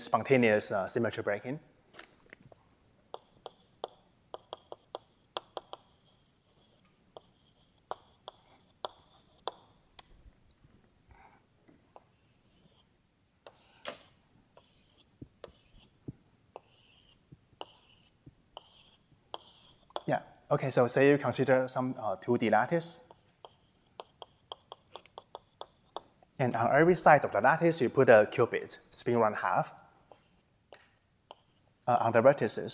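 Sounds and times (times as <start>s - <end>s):
speech: 0.1s - 1.8s, 20.6s - 23.1s, 26.4s - 29.8s, 31.9s - 32.7s
marker or chalk writing on a board: 3.1s - 9.8s, 11.1s - 20.1s, 23.0s - 26.2s, 30.1s - 31.7s.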